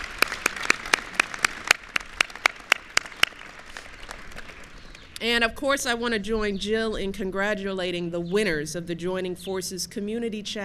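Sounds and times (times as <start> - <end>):
audience applause: 0.0 - 4.9
speech: 5.2 - 10.6.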